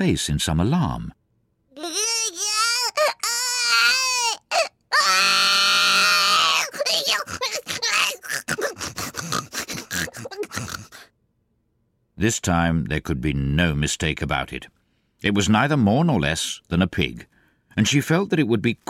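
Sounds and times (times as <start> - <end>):
speech: 0.0 - 1.2, 12.2 - 18.8
voice imitating a baby crying: 1.7 - 11.1
short choppy grunts and sobs: 1.8 - 11.1.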